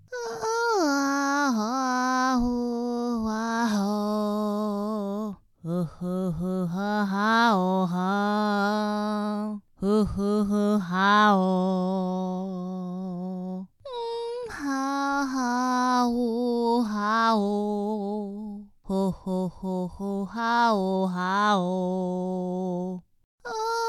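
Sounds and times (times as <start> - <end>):
person singing: 0.0 - 23.8.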